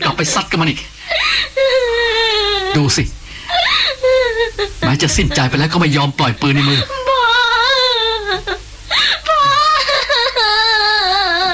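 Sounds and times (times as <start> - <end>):
speech: 0.2 - 1.8, 2.8 - 3.2, 4.6 - 7.0
person crying and wailing, grieving a friend who was shot dead: 1.1 - 2.9, 3.5 - 11.5.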